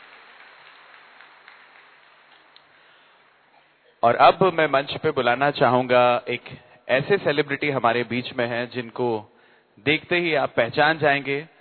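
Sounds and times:
audience applause: 0:00.0 - 0:02.6
speech: 0:04.0 - 0:11.5.

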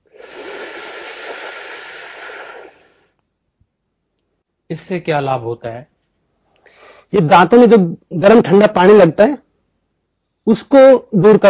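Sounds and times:
breath drawn in through clenched teeth in Sheetkari breathing exercise: 0:00.0 - 0:03.2
speech: 0:04.7 - 0:05.9, 0:07.1 - 0:09.4, 0:10.4 - 0:11.4.

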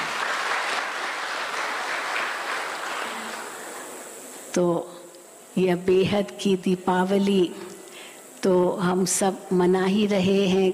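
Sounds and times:
audience applause: 0:00.0 - 0:04.2
speech: 0:04.5 - 0:05.0, 0:05.6 - 0:07.6, 0:08.4 - 0:10.7.

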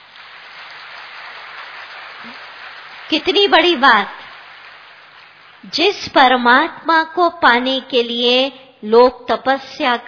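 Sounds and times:
audience applause: 0:00.0 - 0:05.7
speech: 0:02.2 - 0:02.5, 0:03.1 - 0:04.2, 0:05.6 - 0:10.0.

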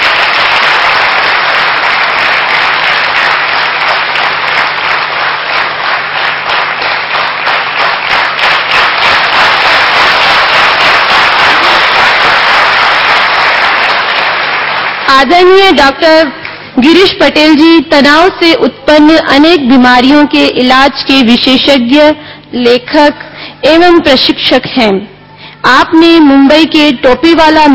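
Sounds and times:
loud applause from a large audience: 0:00.0 - 0:15.1
speech: 0:15.2 - 0:27.7.

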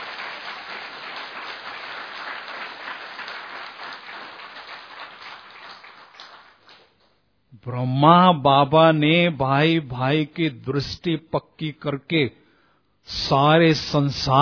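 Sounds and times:
audience clapping: 0:00.0 - 0:07.1
speech: 0:07.6 - 0:12.4, 0:13.1 - 0:14.3.

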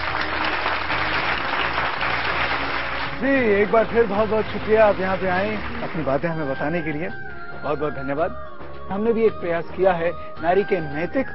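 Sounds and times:
audience clapping to welcome a senior Rajyoga teacher: 0:00.0 - 0:06.4
speech: 0:03.2 - 0:11.3.

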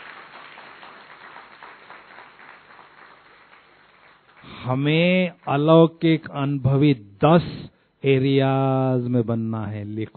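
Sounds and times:
audience applause: 0:00.0 - 0:04.6
speech: 0:04.7 - 0:10.1.

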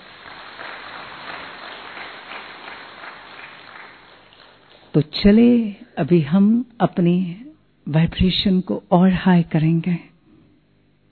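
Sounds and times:
audience clapping loudly: 0:00.0 - 0:05.0
speech: 0:05.0 - 0:10.1.

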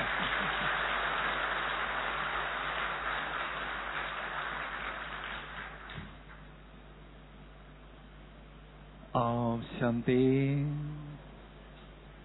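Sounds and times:
audience applause: 0:00.0 - 0:06.1
speech: 0:09.2 - 0:10.9.

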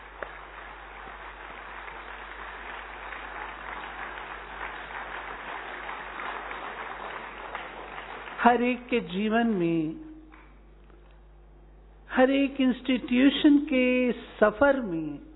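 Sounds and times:
audience clapping, three-clap club clap: 0:00.0 - 0:09.2
speech: 0:08.4 - 0:10.1, 0:12.2 - 0:15.3.

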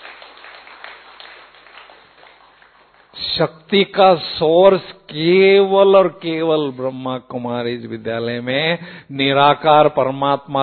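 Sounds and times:
audience clapping: 0:00.0 - 0:03.8
speech: 0:03.2 - 0:10.6.

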